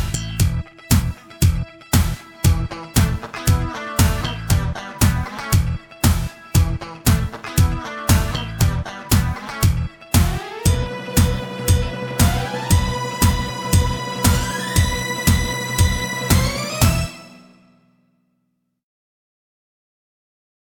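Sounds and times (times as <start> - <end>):
karaoke singing: 1.0 - 17.2.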